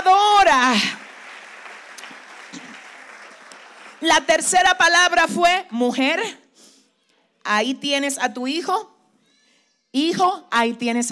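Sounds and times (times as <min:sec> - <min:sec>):
audience applause: 0:00.6 - 0:04.5
speech: 0:04.0 - 0:06.4, 0:07.4 - 0:08.9, 0:09.9 - 0:11.1.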